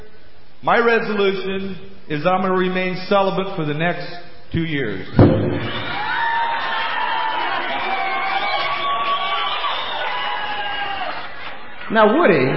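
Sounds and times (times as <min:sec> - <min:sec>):
speech: 0:00.6 - 0:06.0, 0:11.9 - 0:12.5
audience applauding and cheering: 0:05.5 - 0:12.5.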